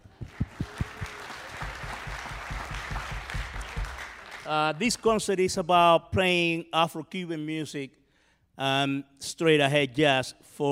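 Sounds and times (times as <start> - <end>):
audience applause: 0.0 - 4.8
speech: 4.5 - 8.0, 8.6 - 10.6.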